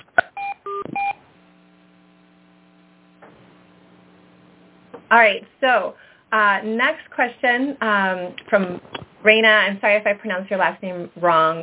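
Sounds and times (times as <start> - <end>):
faint low hum: 0.2 - 11.6
conference call participant joining beeps: 0.4 - 1.2
speech: 5.1 - 11.6.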